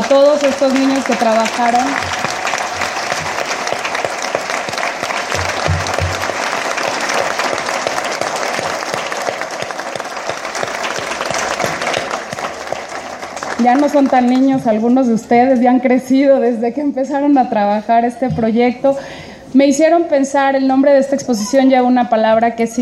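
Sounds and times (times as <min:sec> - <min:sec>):
audience applause: 0:00.0 - 0:14.5
speech: 0:00.1 - 0:02.2, 0:13.6 - 0:22.7.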